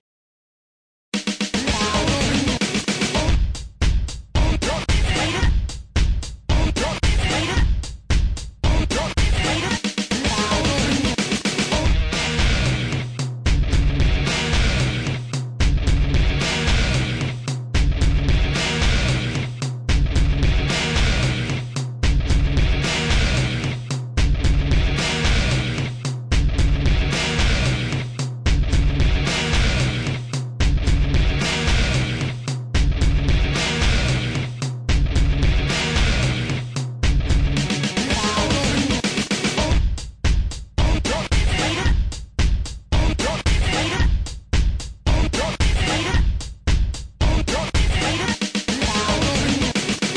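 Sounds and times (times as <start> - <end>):
hip hop beat: 1.1 - 50.1.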